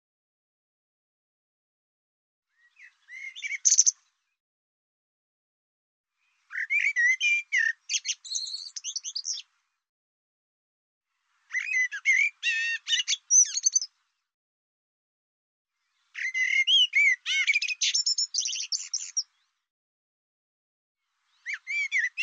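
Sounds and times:
bird song: 2.5s - 4.4s, 6.1s - 9.8s, 11.1s - 14.3s, 15.7s - 19.7s, 21.0s - 22.2s.

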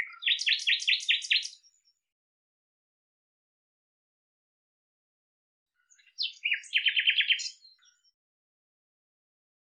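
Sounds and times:
Common nightingale song with chirps and rattling series: 0.0s - 1.9s, 5.8s - 8.2s.

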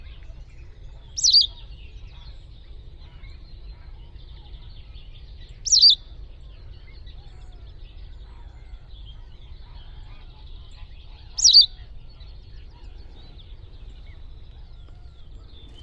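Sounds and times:
bird giving short sharp high wavering calls: 0.0s - 15.8s.

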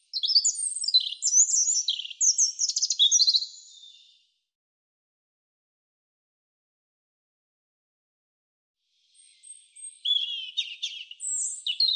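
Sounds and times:
European robin singing high phrases of slurred whistles and trills: 0.0s - 4.2s, 9.1s - 11.9s.

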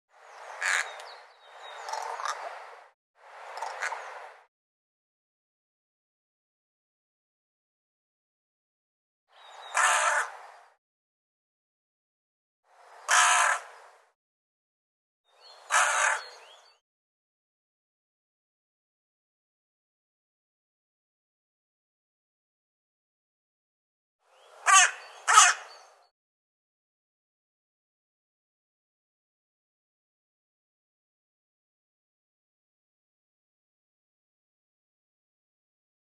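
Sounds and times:
bird giving harsh rasping calls: 0.6s - 1.0s, 3.6s - 4.1s, 9.6s - 10.3s, 13.1s - 13.7s, 15.6s - 16.4s, 24.6s - 25.9s.

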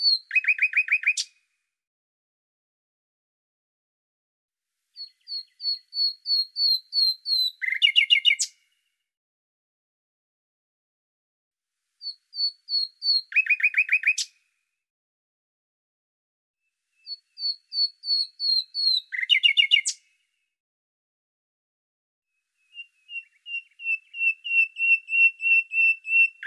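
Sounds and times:
bird singing: 0.0s - 1.3s, 5.0s - 8.8s, 12.0s - 14.4s, 17.0s - 20.0s, 22.5s - 26.4s.

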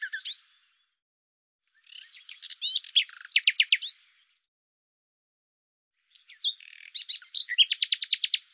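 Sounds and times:
common nightingale song: 0.0s - 1.0s, 1.7s - 4.5s, 6.0s - 8.5s.

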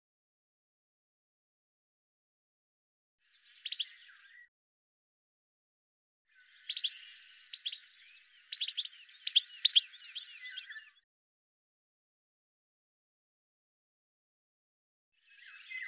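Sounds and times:
bird giving bursts of quick high twittering notes: 3.6s - 4.4s, 6.4s - 11.0s, 15.3s - 15.8s.

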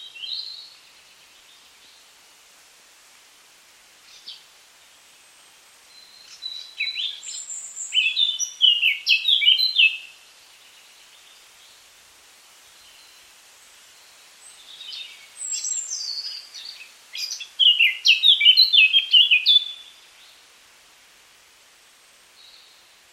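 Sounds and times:
Eurasian Blackcap singing: 5.9s - 11.4s, 14.5s - 20.1s.

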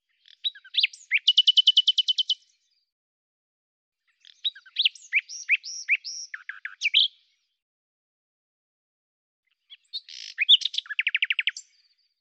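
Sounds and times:
common nightingale singing: 0.1s - 2.5s, 4.1s - 7.4s, 9.5s - 12.1s.

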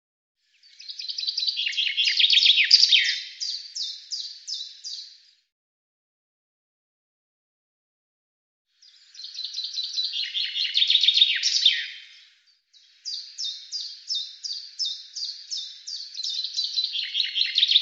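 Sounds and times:
bird song of fast descending trill of sharp notes: 0.4s - 5.5s, 8.8s - 17.8s.

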